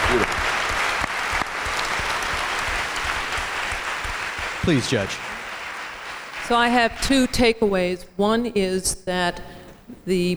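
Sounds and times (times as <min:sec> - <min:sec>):
audience applause: 0:00.0 - 0:07.6
speech: 0:04.7 - 0:05.3, 0:06.5 - 0:10.3.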